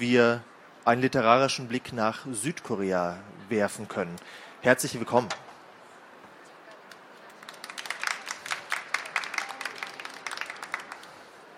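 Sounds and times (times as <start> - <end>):
speech: 0.0 - 5.5
audience clapping: 6.9 - 11.4.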